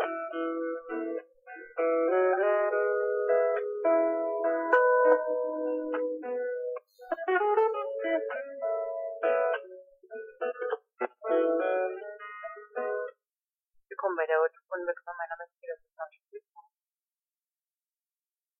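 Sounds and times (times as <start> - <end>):
solo telephone hold music: 0.0 - 13.2.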